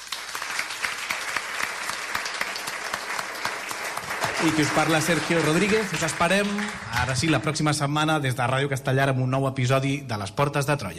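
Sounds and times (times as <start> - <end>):
audience applause: 0.0 - 7.8
speech: 4.4 - 10.9.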